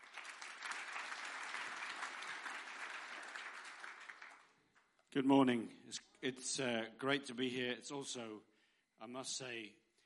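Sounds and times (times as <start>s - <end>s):
church gathering audience applauding a speaker: 0.0s - 4.8s
speech: 5.2s - 9.8s.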